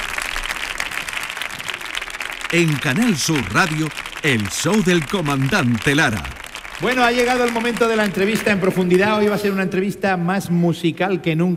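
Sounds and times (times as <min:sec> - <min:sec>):
audience applause: 0:00.0 - 0:09.4
speech: 0:02.5 - 0:11.5.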